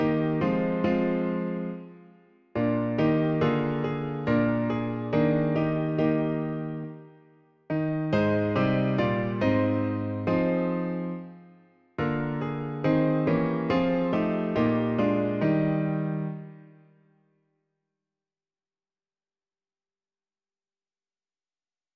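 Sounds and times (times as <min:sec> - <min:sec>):
piano: 0:00.0 - 0:17.3.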